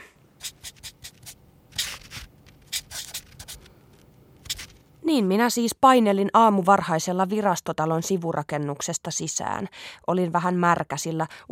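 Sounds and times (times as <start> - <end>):
pen scratching on paper: 0.4 - 3.7, 4.4 - 4.7
speech: 5.1 - 11.4.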